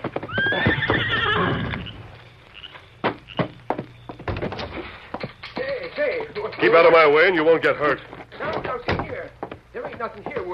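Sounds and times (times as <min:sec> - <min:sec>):
horse hooves clopping: 0:00.0 - 0:10.5
horse whinnying: 0:00.2 - 0:02.0
speech: 0:06.6 - 0:08.1, 0:10.0 - 0:10.5.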